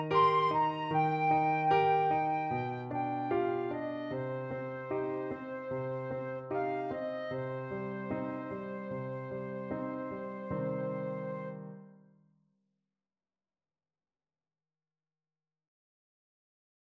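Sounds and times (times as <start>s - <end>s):
flute and clarinet duet: 0.0s - 11.8s.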